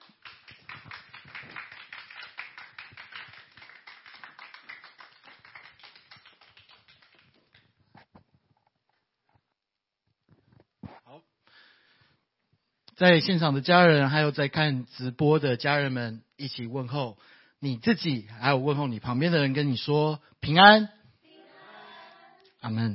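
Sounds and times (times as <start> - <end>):
audience clapping in welcome: 0.0 - 7.8
speech: 13.0 - 21.0, 22.6 - 22.9.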